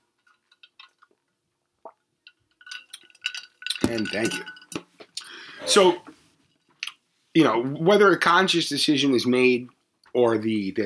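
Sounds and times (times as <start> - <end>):
speech: 3.8 - 4.6, 5.7 - 6.1, 7.4 - 10.8
sipping water from a glass: 5.2 - 6.2.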